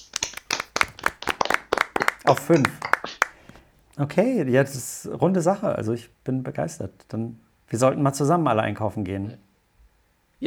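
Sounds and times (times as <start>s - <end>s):
small group clapping: 0.0s - 3.8s
speech: 2.2s - 2.9s, 4.0s - 9.5s.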